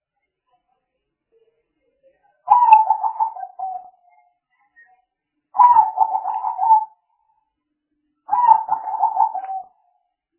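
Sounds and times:
spotted dove cooing: 2.5s - 3.8s, 5.6s - 7.0s, 8.3s - 9.7s.

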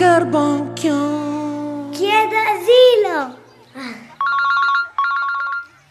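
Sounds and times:
speech: 0.2s - 1.3s, 2.0s - 4.0s
telephone ringing: 4.2s - 5.8s.

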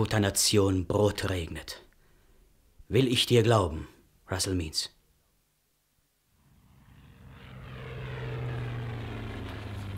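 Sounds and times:
speech: 0.0s - 1.8s, 2.9s - 5.0s
propeller airplanes flying: 6.4s - 9.9s.

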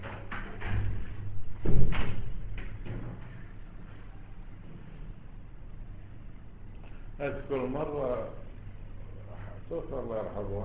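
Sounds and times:
door being closed: 0.4s - 3.3s
speech: 7.2s - 8.4s, 9.7s - 10.6s.

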